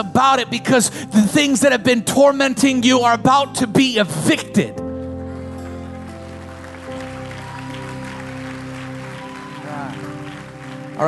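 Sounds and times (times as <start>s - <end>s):
speech: 0.0s - 4.8s
audience clapping and shouting: 5.6s - 11.0s.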